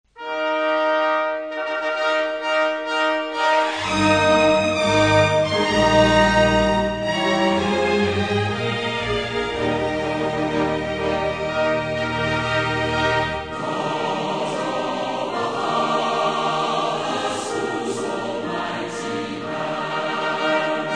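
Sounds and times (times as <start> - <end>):
orchestra playing hymns: 0.2 - 20.9
choir singing hymns: 3.6 - 20.9.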